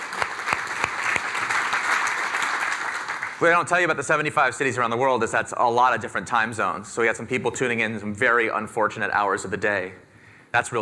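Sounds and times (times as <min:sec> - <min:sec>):
audience applause: 0:00.0 - 0:03.5
speech: 0:03.4 - 0:10.7.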